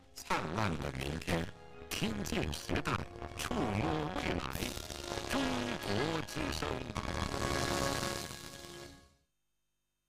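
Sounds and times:
speech: 0.4 - 8.0
radio time signal pips marking 7 pm Beijing time on a Chinese station: 1.2 - 9.0.

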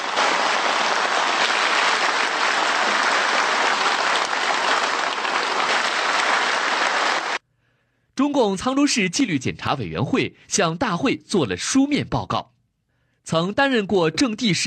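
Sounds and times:
warm applause from the hall: 0.0 - 7.4
speech: 8.3 - 12.5, 13.3 - 14.6.

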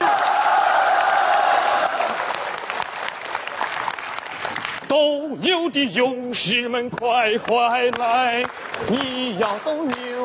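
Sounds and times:
voices cheering: 0.0 - 2.8
audience applause: 0.0 - 4.9, 7.0 - 10.2
speech: 5.0 - 10.2.

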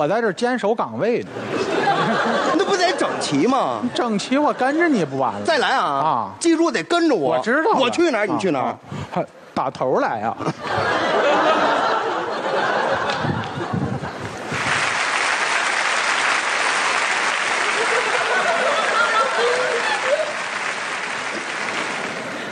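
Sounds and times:
speech: 0.0 - 10.9
laughter: 1.4 - 5.6, 10.4 - 14.7, 17.0 - 20.7
audience applause: 14.2 - 22.5.

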